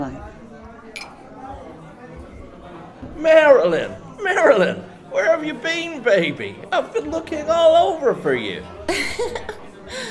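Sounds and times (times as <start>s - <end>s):
cocktail party murmur of many voices: 0.0s - 10.0s
glasses clinking: 0.7s - 2.4s
speech: 3.2s - 10.0s
laughter: 8.8s - 10.0s.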